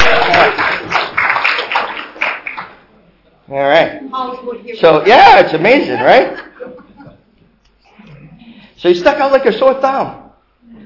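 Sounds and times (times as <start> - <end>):
audience applause: 0.0 - 2.8
speech: 4.4 - 6.4, 8.8 - 10.8
laughter: 5.7 - 7.3.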